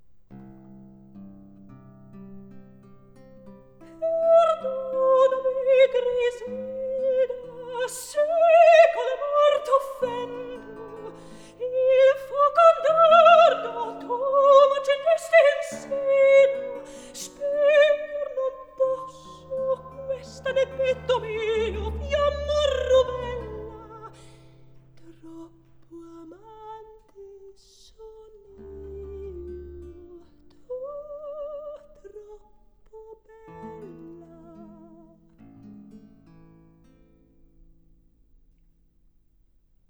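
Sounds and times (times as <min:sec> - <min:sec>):
recitative singing: 0:04.0 - 0:32.3.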